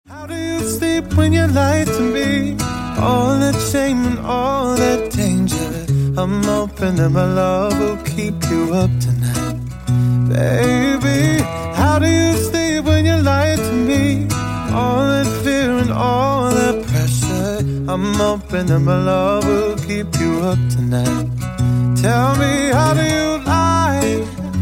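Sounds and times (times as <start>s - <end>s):
acoustic music: 0.1s - 24.6s.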